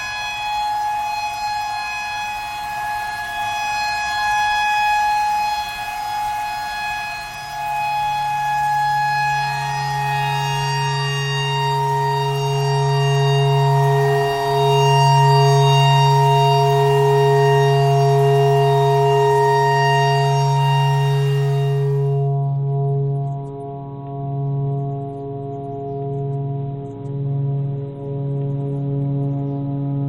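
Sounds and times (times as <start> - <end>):
clarinet playing pentatonic phrases: 0.0 - 22.4
tornado siren: 0.0 - 30.0.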